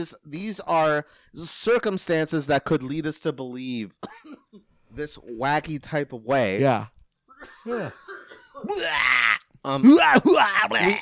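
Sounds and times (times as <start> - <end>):
speech: 0.0 - 11.0
voice mockingly imitating coughing: 4.0 - 4.6, 7.3 - 11.0.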